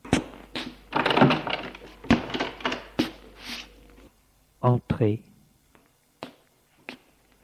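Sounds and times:
door being opened: 0.9 - 3.0
speech: 4.6 - 5.3.

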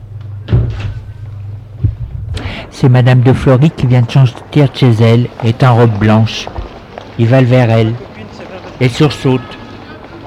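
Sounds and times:
steady low hum: 0.0 - 7.2
heavy building door opening: 0.4 - 1.2
speech: 2.7 - 6.6, 7.2 - 8.1, 8.8 - 9.6.

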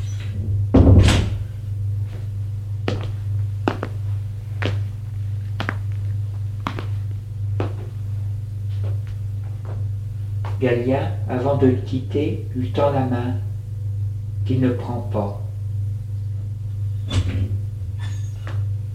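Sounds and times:
steady low hum: 0.0 - 18.9
room door shutting with a heavy thud: 0.2 - 1.5
speech: 10.6 - 13.5, 14.5 - 15.4.

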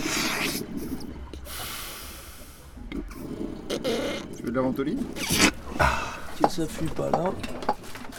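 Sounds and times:
pump hissing against a blocked water tank: 0.0 - 4.4, 5.1 - 6.6
speech: 3.8 - 7.8.

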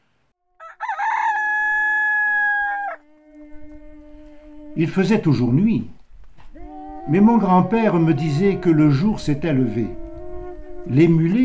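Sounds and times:
rooster crowing: 0.5 - 5.8, 6.4 - 11.4
faint low rumble: 3.0 - 11.4
speech: 4.8 - 6.0, 7.1 - 10.0, 10.8 - 11.4.

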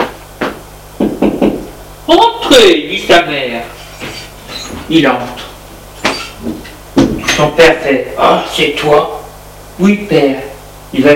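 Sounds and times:
knocking on a door: 0.0 - 1.7, 6.4 - 7.2
speech: 2.1 - 3.8, 4.9 - 5.5, 7.4 - 9.2, 9.8 - 11.1.

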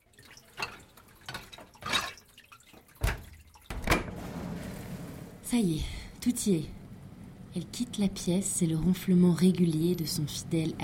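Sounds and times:
water droplets dripping: 0.0 - 3.8
speech: 5.5 - 6.8, 7.6 - 10.8.

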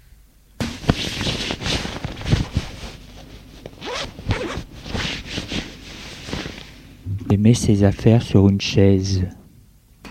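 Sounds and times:
clothing rustling as someone undresses: 0.6 - 7.0
clothing zippers rasping: 0.8 - 6.6
speech: 7.3 - 9.4.

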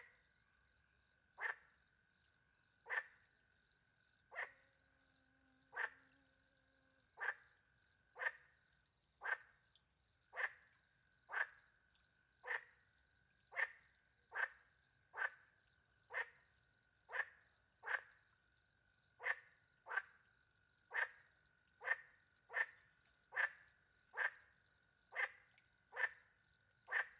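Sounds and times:
frog croaks: 1.3 - 1.8, 2.7 - 3.4, 4.3 - 4.8, 5.6 - 6.2, 7.0 - 8.6, 9.2 - 9.6, 10.3 - 27.1.

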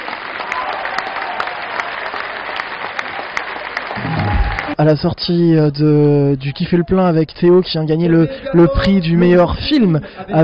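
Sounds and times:
audience applause: 0.0 - 4.8
low rumble of a crowd stirring: 4.0 - 4.8
speech: 4.8 - 10.4.

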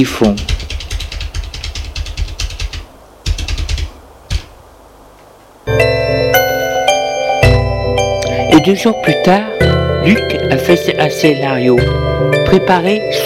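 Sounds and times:
speech: 0.0 - 0.6, 8.6 - 13.2
rapid typing of an address on a computer keyboard: 0.2 - 4.5
bright sustained tone: 5.7 - 13.2.

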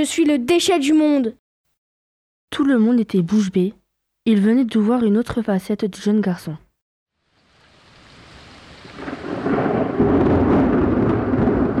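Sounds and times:
speech: 0.0 - 1.4, 2.5 - 6.6
thunder clap during rainstorm: 8.3 - 11.7.

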